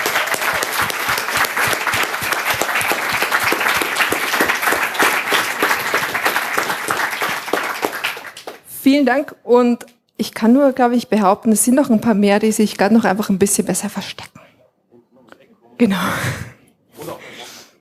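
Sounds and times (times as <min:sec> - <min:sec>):
crowd applauding: 0:00.0 - 0:08.7
speech: 0:08.9 - 0:14.4, 0:15.8 - 0:17.2.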